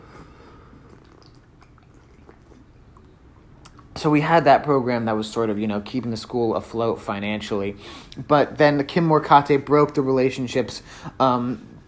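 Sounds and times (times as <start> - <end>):
person sipping coffee: 0.0 - 4.0
speech: 4.0 - 11.7.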